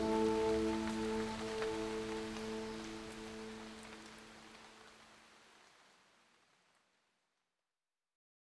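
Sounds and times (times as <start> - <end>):
piano music: 0.0 - 4.4
rain: 0.0 - 7.0.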